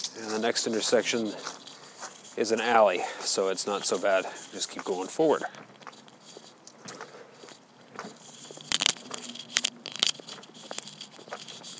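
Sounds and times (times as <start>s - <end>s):
hiss: 0.0s - 11.7s
person walking on a sidewalk with a ridge: 0.0s - 11.7s
speech: 0.2s - 1.7s, 2.4s - 5.8s.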